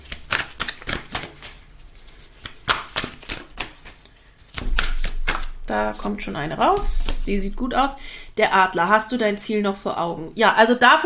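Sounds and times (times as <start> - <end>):
shuffling a deck of oracle cards: 0.0 - 7.6
speech: 5.7 - 11.0.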